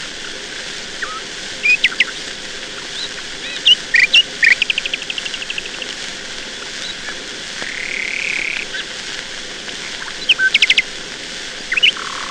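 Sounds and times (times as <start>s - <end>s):
nightingale singing: 1.0s - 2.2s, 2.8s - 5.8s, 6.8s - 8.8s, 9.8s - 10.9s, 11.7s - 12.2s.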